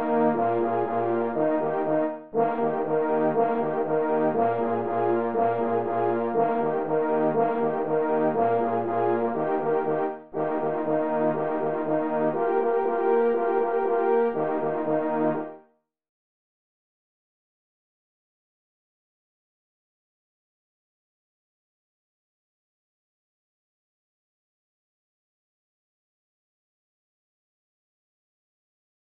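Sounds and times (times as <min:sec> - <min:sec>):
polka music in E-flat: 0:00.0 - 0:15.6.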